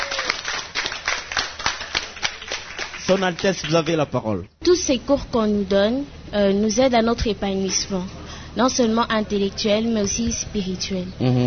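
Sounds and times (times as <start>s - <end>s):
audience clapping: 0.0s - 4.2s
speech: 3.1s - 11.4s.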